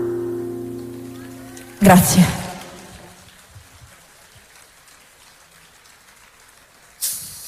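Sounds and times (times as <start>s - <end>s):
audience applause: 0.8s - 7.4s
speech: 1.8s - 2.4s.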